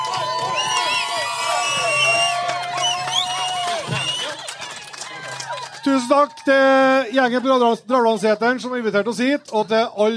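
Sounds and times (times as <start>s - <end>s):
audience applause and cheering: 0.0s - 7.0s
speech: 5.9s - 10.1s.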